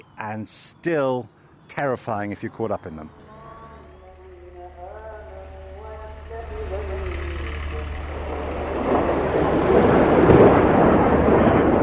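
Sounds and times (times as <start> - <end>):
speech: 0.2 - 3.2
rocket fired from Gaza into Israel: 4.1 - 11.8.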